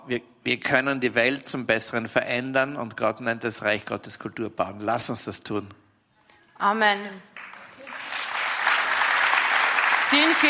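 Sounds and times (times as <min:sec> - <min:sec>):
speech: 0:00.0 - 0:05.8, 0:06.6 - 0:07.4, 0:10.1 - 0:10.4
audience applause: 0:07.3 - 0:10.4.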